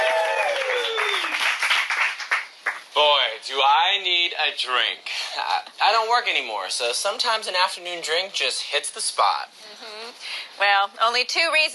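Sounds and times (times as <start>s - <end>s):
audience applause: 0.0s - 2.8s
speech: 3.5s - 9.6s, 10.6s - 11.7s.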